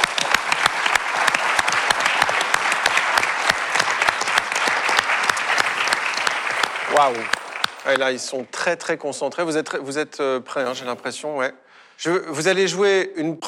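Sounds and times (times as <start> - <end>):
audience applause: 0.0 - 8.3
speech: 7.0 - 13.4.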